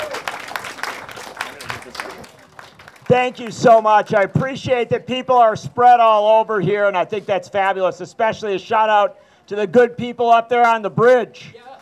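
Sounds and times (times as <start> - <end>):
audience applause welcoming a speaker: 0.0 - 3.5
speech: 3.1 - 11.7.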